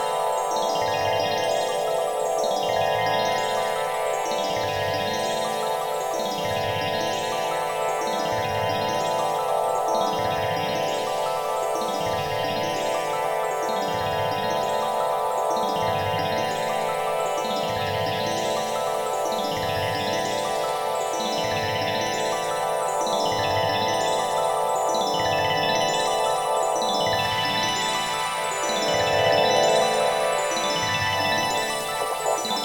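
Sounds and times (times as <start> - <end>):
Moog synthesizer: 0.0 - 32.6.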